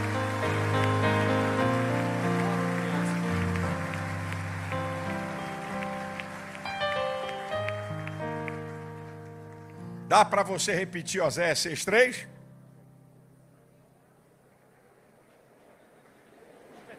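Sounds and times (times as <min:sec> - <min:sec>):
audience applause: 0:00.0 - 0:09.8
speech: 0:10.1 - 0:12.3.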